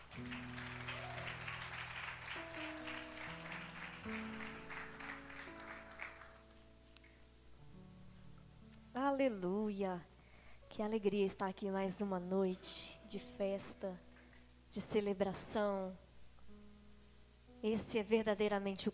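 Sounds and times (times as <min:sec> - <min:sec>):
audience applause: 0:00.0 - 0:06.6
speech: 0:00.2 - 0:00.5, 0:09.2 - 0:10.1, 0:10.8 - 0:14.1, 0:14.7 - 0:16.0, 0:17.6 - 0:18.9.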